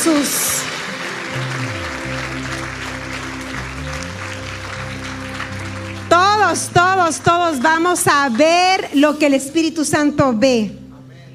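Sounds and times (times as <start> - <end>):
speech: 0.0 - 0.5, 6.2 - 10.8
audience applause: 0.0 - 8.9
low organ or keyboard tones: 0.8 - 8.6.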